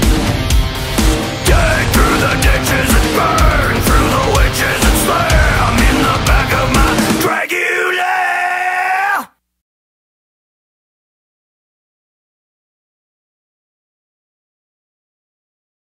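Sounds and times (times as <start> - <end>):
metal cover song: 0.0 - 9.2.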